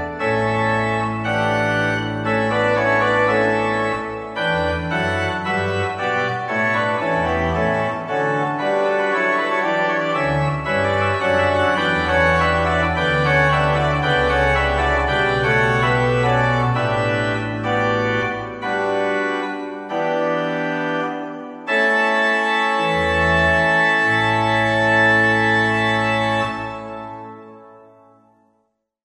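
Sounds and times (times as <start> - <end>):
organ playing a wedding march: 0.0 - 28.3.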